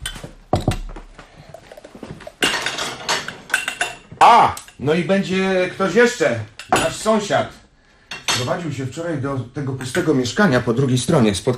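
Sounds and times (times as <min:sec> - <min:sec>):
plates and glasses clattering as they are handled: 0:00.0 - 0:04.8, 0:06.6 - 0:07.2, 0:08.0 - 0:08.6
speech: 0:04.3 - 0:07.6, 0:08.4 - 0:11.5.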